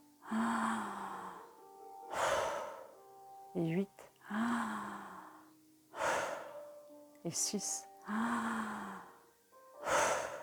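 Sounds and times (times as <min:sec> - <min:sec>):
person breathing slowly during a guided countdown: 0:00.2 - 0:03.0, 0:04.2 - 0:06.7, 0:08.0 - 0:10.4
speech: 0:03.6 - 0:04.5, 0:07.2 - 0:08.8.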